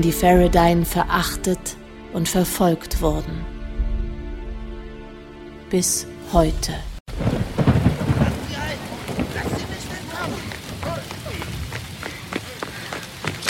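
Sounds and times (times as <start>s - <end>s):
speech: 0.0s - 3.5s, 5.7s - 6.9s
deep loud thunder: 0.0s - 5.2s, 6.3s - 13.4s
steady rain in a thunderstorm: 7.1s - 13.4s.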